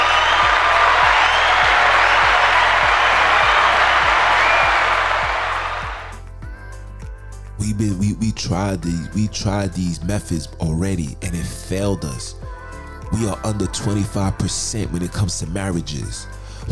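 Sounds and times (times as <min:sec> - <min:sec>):
audience applause: 0:00.0 - 0:06.2
speech: 0:07.8 - 0:12.5, 0:13.1 - 0:16.7.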